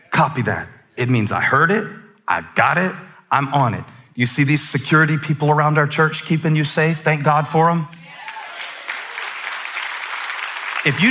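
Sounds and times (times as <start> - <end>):
speech: 0.2 - 8.0, 10.8 - 11.1
audience applause: 8.0 - 11.1.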